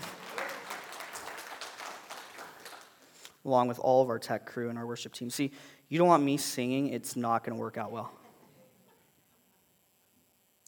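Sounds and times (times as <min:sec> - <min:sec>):
audience round of applause: 0:00.0 - 0:03.1
speech: 0:03.4 - 0:08.2.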